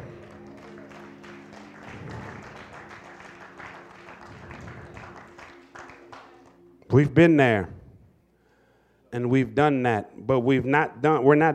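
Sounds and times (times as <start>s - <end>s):
audience clapping: 0.0s - 6.7s
speech: 6.9s - 7.8s, 9.1s - 11.5s.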